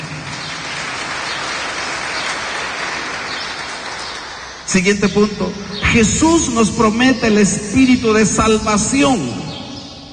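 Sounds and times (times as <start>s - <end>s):
audience clapping: 0.0s - 5.3s
speech: 4.7s - 9.5s.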